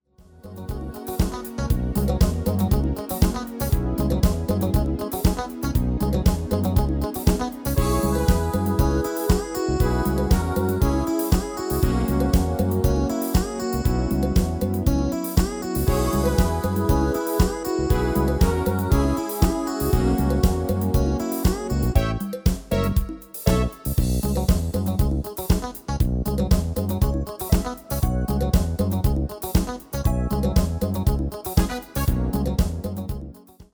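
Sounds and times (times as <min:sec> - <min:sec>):
MIDI music: 0:00.4 - 0:33.4.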